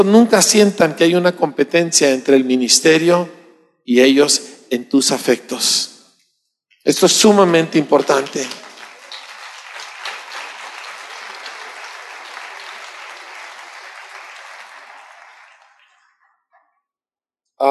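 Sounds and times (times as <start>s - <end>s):
speech: 0.0s - 5.9s, 6.8s - 8.6s
audience applause: 7.8s - 16.4s.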